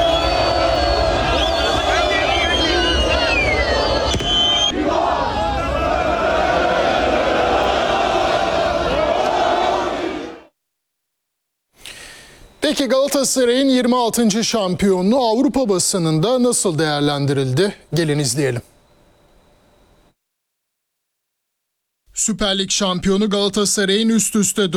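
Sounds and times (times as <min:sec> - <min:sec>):
football fans singing championship chants: 0:00.0 - 0:10.5
speech: 0:12.8 - 0:18.7, 0:22.2 - 0:24.7.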